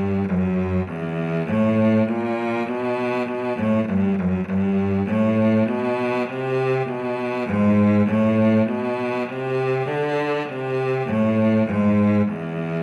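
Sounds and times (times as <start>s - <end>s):
cello playing a minuet: 0.0s - 12.8s
viola playing a minuet: 0.0s - 12.8s.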